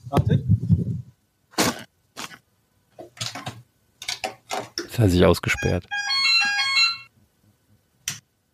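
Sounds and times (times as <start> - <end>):
speech: 0.1 - 0.5, 5.0 - 6.0
doorbell ringtone: 5.5 - 7.1.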